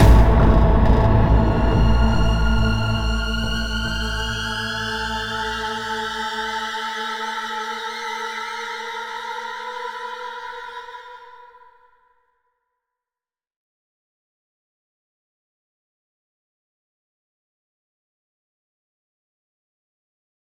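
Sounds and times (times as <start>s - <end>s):
ambient sting: 0.0s - 6.7s.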